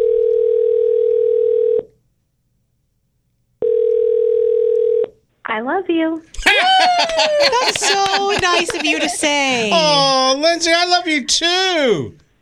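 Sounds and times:
telephone dial tone: 0:00.0 - 0:01.9, 0:03.6 - 0:05.1
speech: 0:05.6 - 0:12.2
laughter: 0:06.4 - 0:10.5.

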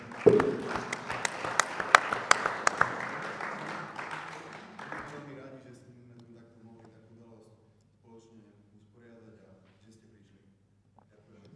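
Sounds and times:
big applause: 0:00.0 - 0:05.4.

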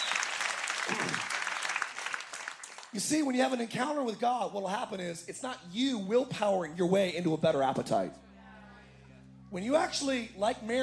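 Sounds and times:
audience hand clapping: 0:00.0 - 0:03.2
speech: 0:02.9 - 0:08.2, 0:09.5 - 0:10.8.

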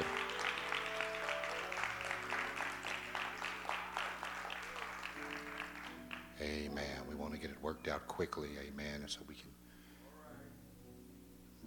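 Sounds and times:
audience clapping hands in praise: 0:00.0 - 0:06.5
speech: 0:06.5 - 0:09.7.

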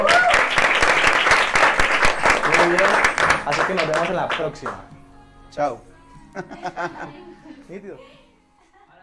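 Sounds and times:
applause: 0:00.0 - 0:04.8
speech: 0:03.7 - 0:08.2
laughter: 0:06.3 - 0:08.0.

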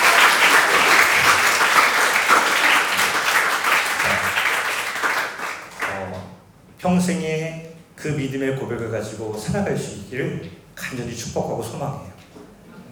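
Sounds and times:
round of applause: 0:00.0 - 0:06.2
speech: 0:06.8 - 0:12.1.

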